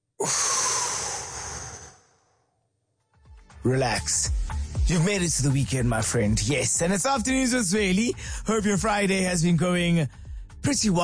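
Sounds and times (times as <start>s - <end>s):
speech: 0.2s - 0.5s, 3.6s - 11.0s
deep breath in and out: 0.2s - 2.6s, 8.2s - 8.5s, 10.1s - 10.6s.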